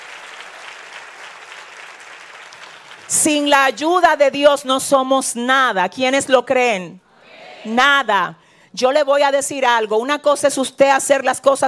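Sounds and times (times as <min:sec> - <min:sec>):
crowd applauding: 0:00.0 - 0:03.3
speech: 0:03.1 - 0:07.0, 0:07.6 - 0:11.6.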